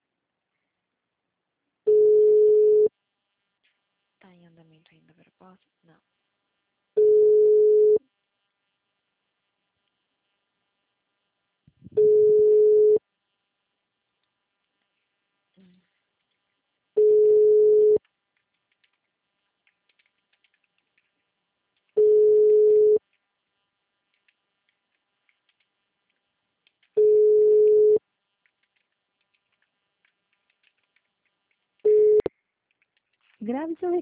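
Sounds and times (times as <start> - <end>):
telephone ringback tone on a call: 1.9 - 2.9, 7.0 - 8.0, 12.0 - 13.0, 17.0 - 18.0, 22.0 - 23.0, 27.0 - 28.0
speech: 4.9 - 6.2, 33.4 - 34.0.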